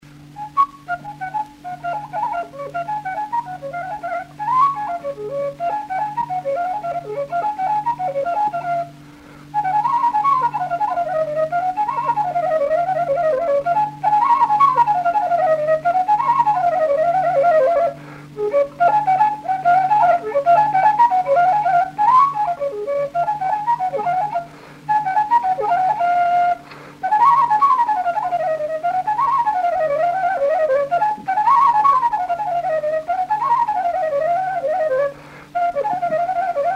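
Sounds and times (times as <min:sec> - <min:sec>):
sârbă folk dance on fluier flute: 0:00.2 - 0:36.7.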